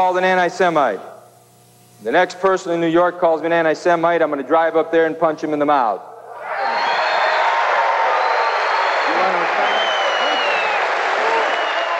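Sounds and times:
speech: 0.0s - 1.1s, 2.0s - 6.1s
large crowd applauding and shouting: 6.5s - 11.9s
crowd laughing: 8.9s - 11.9s.

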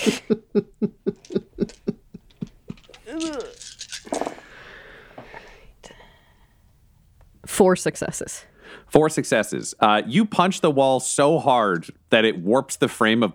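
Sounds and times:
speech: 0.0s - 1.7s, 7.6s - 13.3s
laughter: 0.0s - 2.9s
dice being rolled: 2.7s - 4.4s.

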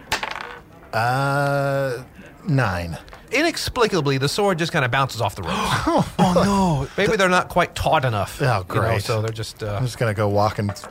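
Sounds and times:
dice rolled on a table: 0.1s - 0.6s
speech: 0.9s - 10.8s.

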